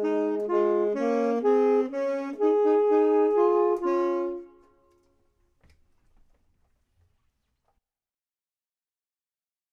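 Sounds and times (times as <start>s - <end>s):
clarinet: 0.0s - 5.2s
saxophone: 0.0s - 5.2s.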